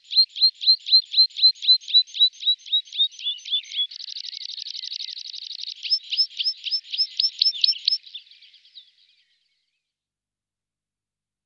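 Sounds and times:
Meadow pipit Anthus pratensis singing: 0.0 - 9.4.

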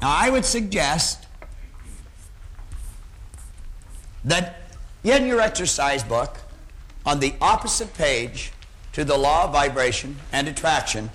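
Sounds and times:
speech: 0.0 - 1.2, 4.2 - 6.4, 7.0 - 11.1
word being written on a board: 1.6 - 4.3.

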